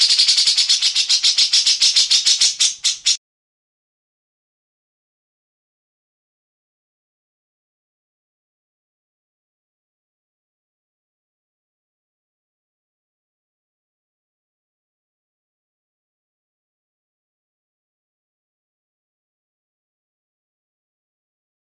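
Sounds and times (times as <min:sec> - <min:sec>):
grey-cheeked bulbul harsh rattling song: 0:00.0 - 0:03.2.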